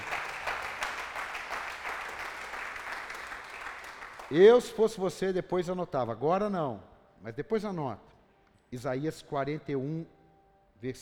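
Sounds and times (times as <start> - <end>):
audience applauding: 0.0 - 4.4
speech: 4.3 - 8.1, 8.7 - 10.2, 10.8 - 11.0.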